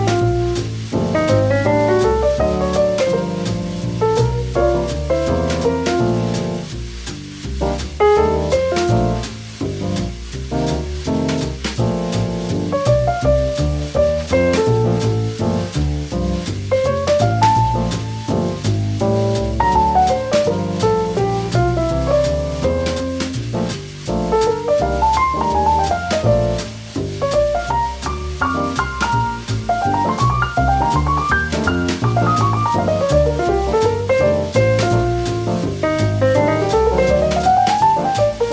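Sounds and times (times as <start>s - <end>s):
jazz piano trio playing: 0.0s - 38.5s.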